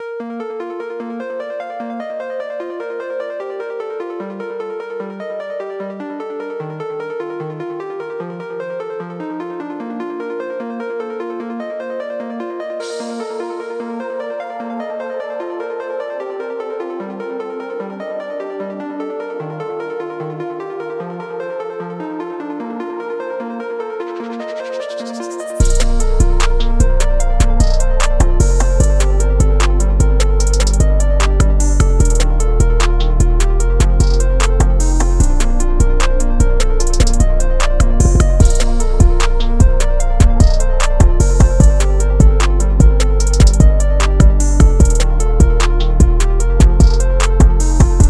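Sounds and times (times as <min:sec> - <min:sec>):
rap trap instrumental: 0:24.6 - 0:48.0.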